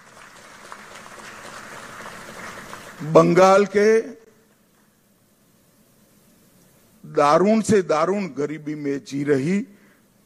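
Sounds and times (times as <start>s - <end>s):
large crowd clapping: 0.0s - 3.8s
speech: 3.0s - 4.2s, 7.2s - 9.7s.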